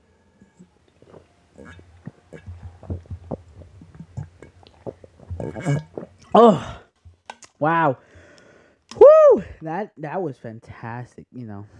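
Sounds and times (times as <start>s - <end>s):
person drinking water: 0.4s - 7.0s
speech: 5.6s - 6.8s, 7.6s - 8.1s, 9.6s - 11.7s.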